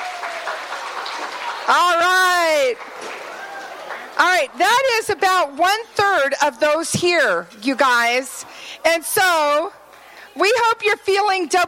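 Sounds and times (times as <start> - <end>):
audience clapping hands: 0.0 - 4.6
speech: 1.7 - 3.1, 4.2 - 9.8, 10.4 - 11.6.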